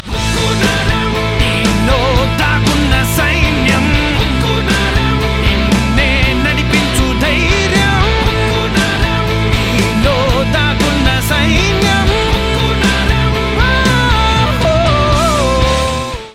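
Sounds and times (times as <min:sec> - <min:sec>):
Telugu theme ringtone music: 0:00.1 - 0:16.3.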